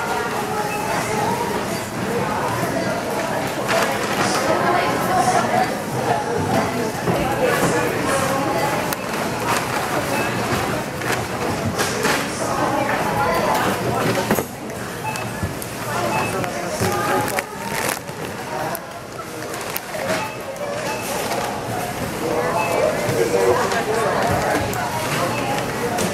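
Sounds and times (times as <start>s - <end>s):
grocery store noise: 0.0s - 26.1s.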